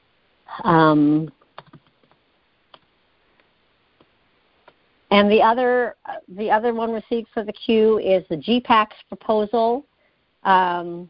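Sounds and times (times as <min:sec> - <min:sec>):
speech: 0:00.5 - 0:01.4, 0:05.1 - 0:11.0
soft keystrokes on a computer keyboard typing meeting minutes: 0:01.6 - 0:02.2.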